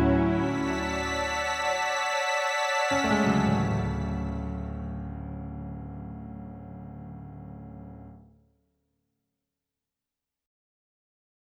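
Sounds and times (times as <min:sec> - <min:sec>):
synthesizer music session: 0:00.0 - 0:08.2.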